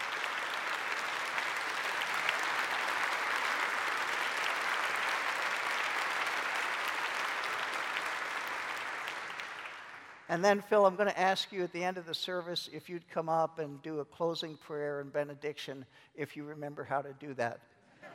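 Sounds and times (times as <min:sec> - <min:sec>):
audience applause: 0:00.0 - 0:10.3
speech: 0:10.3 - 0:17.7.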